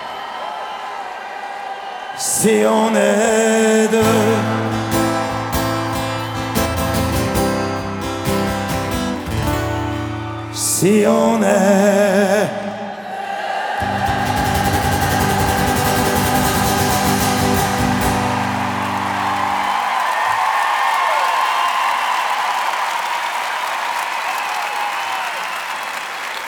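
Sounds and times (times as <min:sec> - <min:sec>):
audience applause at the Arena de Paris La Défense: 0:00.0 - 0:02.6, 0:04.0 - 0:10.5, 0:13.8 - 0:26.4
audience cheering at the Arena de Paris La Défense: 0:00.0 - 0:02.7, 0:04.1 - 0:08.6, 0:12.9 - 0:26.0
speech: 0:02.2 - 0:04.6, 0:10.8 - 0:12.6.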